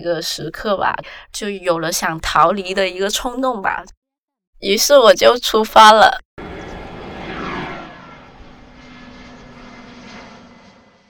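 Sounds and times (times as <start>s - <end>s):
speech: 0.0s - 4.0s, 4.6s - 6.2s
airplane engine roar in flight: 6.4s - 11.0s.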